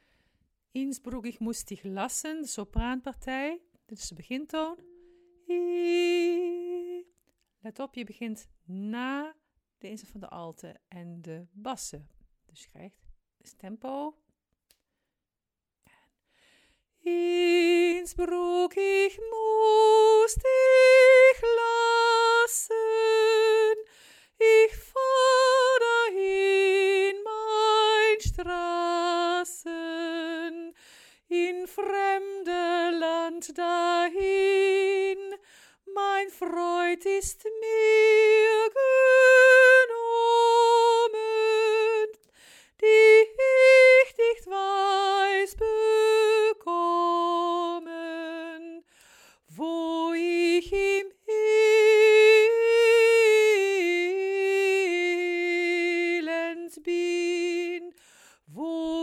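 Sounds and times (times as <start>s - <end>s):
soprano singing: 0.8s - 7.1s, 17.0s - 42.2s, 42.8s - 48.9s, 49.5s - 59.0s.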